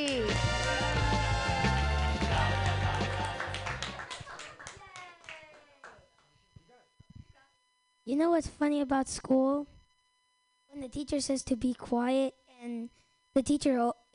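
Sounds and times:
audience clapping: 0.0 - 6.3
speech: 8.1 - 9.8, 10.8 - 14.1.

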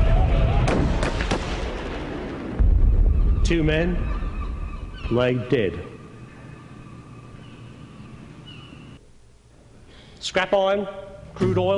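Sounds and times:
gunshots: 0.5 - 4.0
speech: 3.5 - 4.2, 5.1 - 6.0, 10.2 - 11.7.

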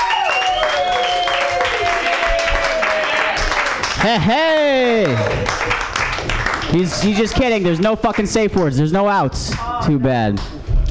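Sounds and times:
audience round of applause: 0.0 - 8.3
speech: 4.0 - 5.9, 6.7 - 10.6.

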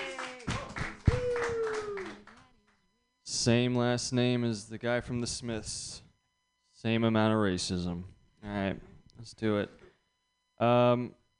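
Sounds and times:
person whooping: 0.0 - 2.2
comedy show audience applauding a comedian: 0.0 - 2.5
speech: 3.4 - 6.0, 6.8 - 9.8, 10.6 - 11.2.

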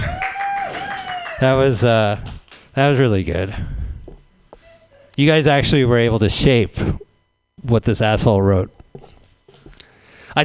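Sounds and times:
scattered audience clapping: 0.0 - 2.7
speech: 1.4 - 3.8, 5.2 - 6.9, 7.6 - 8.8.

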